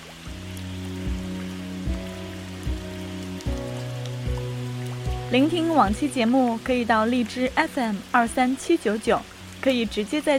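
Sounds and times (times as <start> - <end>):
rain falling: 0.0 - 10.3
speech: 5.3 - 10.3.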